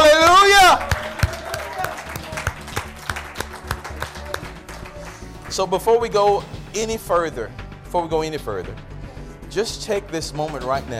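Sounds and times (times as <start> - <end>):
audience clapping: 0.0 - 6.1
speech: 5.6 - 8.9, 9.5 - 10.9.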